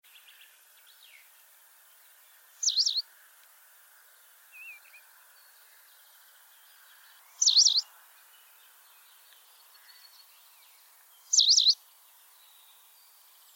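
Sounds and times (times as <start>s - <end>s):
white wagtail calling with sharp high chirps: 2.6s - 3.0s, 7.4s - 7.8s, 11.3s - 11.8s.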